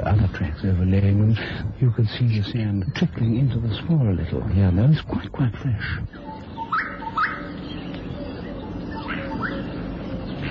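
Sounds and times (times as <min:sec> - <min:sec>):
low rumble: 0:00.0 - 0:10.4
speech: 0:00.6 - 0:06.3
bird calling from a thorn tree: 0:06.1 - 0:10.4.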